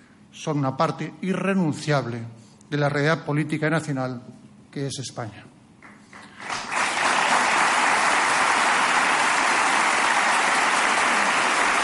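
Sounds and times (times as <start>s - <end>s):
speech: 0.4s - 5.5s
audience applause: 6.0s - 11.8s.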